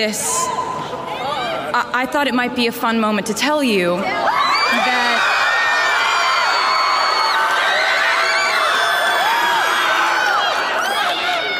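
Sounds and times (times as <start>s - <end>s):
speech: 0.0s - 0.7s, 1.7s - 5.0s
concert crowd cheering and screaming: 0.2s - 1.5s, 4.1s - 11.5s.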